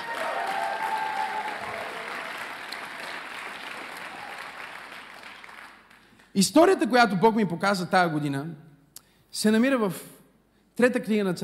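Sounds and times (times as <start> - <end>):
audience applause: 0.0 - 6.2
speech: 6.4 - 8.7, 9.3 - 10.1, 10.8 - 11.4.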